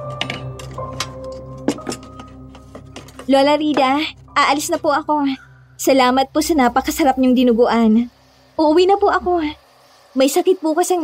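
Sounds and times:
plates, glasses and cutlery clinking while washed: 0.0s - 4.0s
speech: 3.3s - 11.0s.

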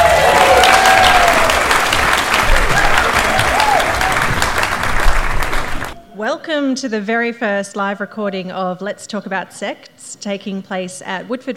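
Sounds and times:
large crowd applause at a live podcast recording at Woodford Folk Festival: 0.0s - 6.0s
speech: 6.5s - 11.5s.

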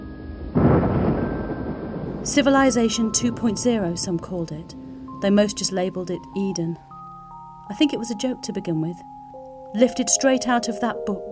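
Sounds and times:
rumbling thunder: 0.4s - 6.2s
speech: 2.2s - 6.9s, 7.7s - 9.1s, 9.7s - 11.3s.

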